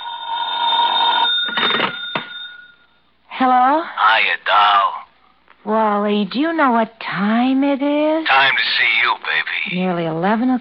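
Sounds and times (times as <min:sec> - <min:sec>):
old-style telephone bell ringing: 0:00.0 - 0:03.0
speech: 0:03.4 - 0:05.0, 0:05.6 - 0:10.5.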